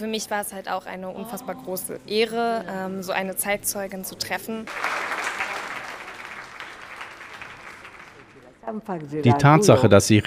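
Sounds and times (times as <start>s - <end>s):
speech: 0.0s - 5.0s, 8.7s - 10.2s
audience applause: 4.7s - 9.6s.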